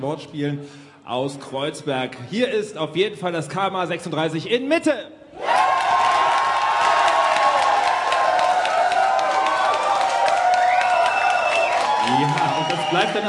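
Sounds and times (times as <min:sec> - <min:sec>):
speech: 0:00.0 - 0:05.5, 0:13.0 - 0:13.2
crowd cheering: 0:05.4 - 0:13.2
clapping: 0:05.7 - 0:13.2
shrill whistles: 0:10.5 - 0:13.2.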